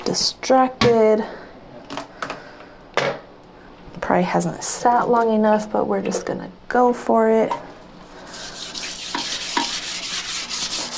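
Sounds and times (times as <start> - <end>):
speech: 0.1 - 1.4, 4.1 - 7.7
scrubbing a toilet: 8.1 - 10.9.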